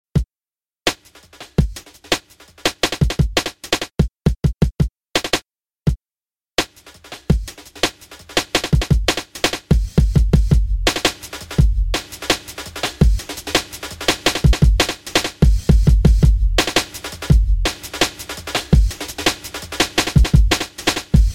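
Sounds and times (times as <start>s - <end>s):
breakbeat with envelopes: 0.9s - 5.4s, 6.6s - 21.3s.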